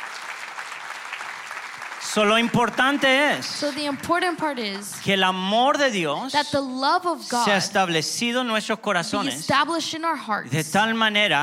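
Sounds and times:
audience applauding: 0:00.0 - 0:06.0
speech: 0:02.1 - 0:11.4.

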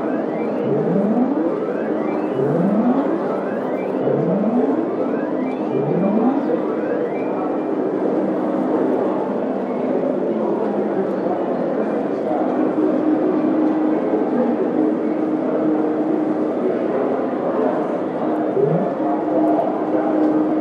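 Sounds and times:
casino machine noise: 0:00.0 - 0:07.5, 0:18.5 - 0:19.1
rising electronic whoops: 0:00.0 - 0:07.5, 0:18.5 - 0:19.0
murmuring voices in a casino: 0:00.0 - 0:20.6.

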